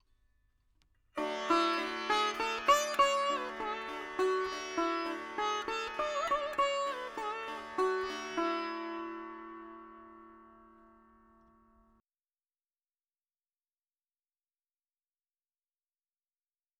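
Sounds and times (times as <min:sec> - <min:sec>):
dry veena melody: 0:01.2 - 0:12.0.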